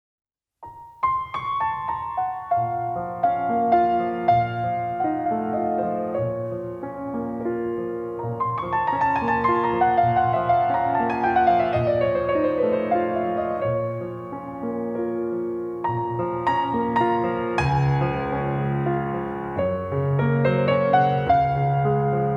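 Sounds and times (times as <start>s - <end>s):
nocturne in B flat minor: 0.6s - 22.3s.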